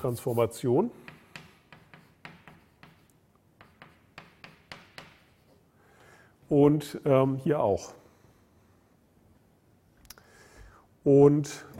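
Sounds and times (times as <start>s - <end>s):
speech: 0.0s - 1.1s, 6.5s - 8.0s, 11.1s - 11.7s
handwriting a mathematical formula on a lecture surface: 1.0s - 5.6s.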